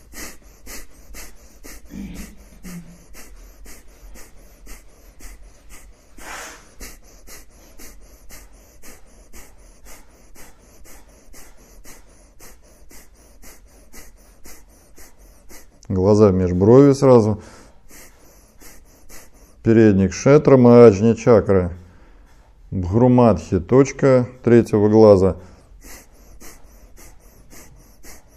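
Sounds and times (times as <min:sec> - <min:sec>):
kapalabhati rapid forceful yogic breathing: 0:00.0 - 0:28.3
speech: 0:15.9 - 0:17.6, 0:19.7 - 0:21.8, 0:22.8 - 0:25.5.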